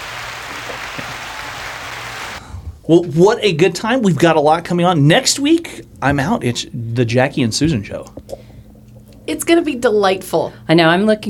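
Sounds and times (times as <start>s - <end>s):
applause: 0.0s - 2.4s
speech: 2.9s - 8.5s, 9.3s - 11.2s.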